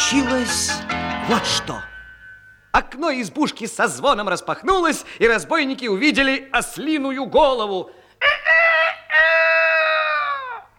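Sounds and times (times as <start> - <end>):
speech: 0.1 - 1.9, 2.8 - 8.4
rooster crowing from under a window: 8.2 - 10.7.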